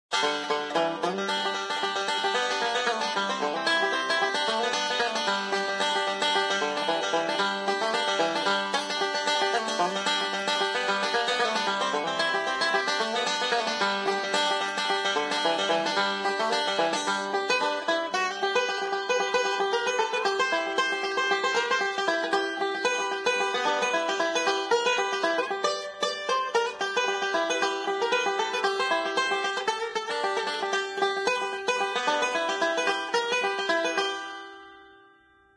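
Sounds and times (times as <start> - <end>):
banjo: 0.1 - 35.3.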